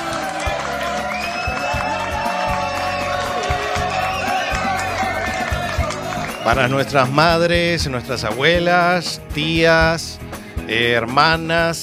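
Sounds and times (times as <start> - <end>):
applause and cheering: 0.0 - 7.7
speech: 6.4 - 11.8.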